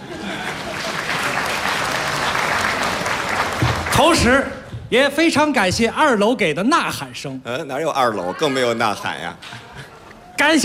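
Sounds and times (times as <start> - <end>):
laughter: 0.0 - 1.6, 9.4 - 10.3
audience applause: 0.0 - 4.3
speech: 4.0 - 10.6.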